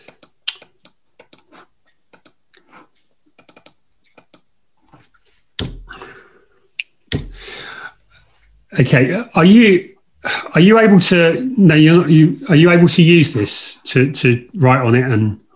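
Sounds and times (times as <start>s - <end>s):
typing on a computer keyboard: 0.0s - 1.5s, 2.1s - 2.4s, 3.4s - 4.5s
dull thumps: 5.6s - 6.0s
speech: 8.8s - 9.9s, 10.5s - 15.4s.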